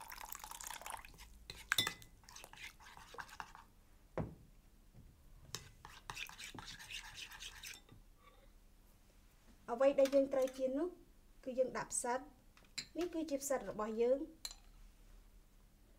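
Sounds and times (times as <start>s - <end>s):
water poured into flour batter for frying mushrooms: 0.0s - 1.3s
speech: 9.7s - 12.4s, 13.0s - 14.4s.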